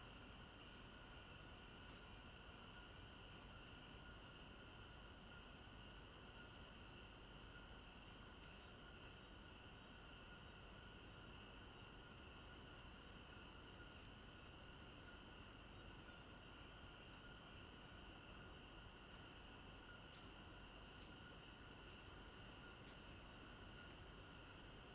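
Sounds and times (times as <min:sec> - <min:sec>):
crickets chirping at night in a village garden in Africa: 0:00.0 - 0:24.9.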